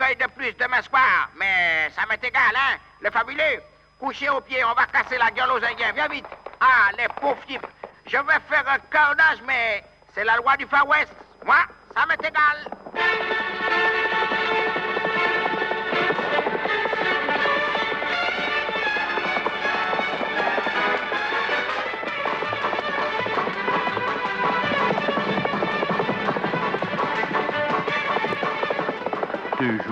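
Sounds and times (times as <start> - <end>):
speech: 0.2 - 13.5, 29.6 - 29.8
horse galloping at full speed across the open pampa: 4.9 - 8.8, 10.6 - 29.8.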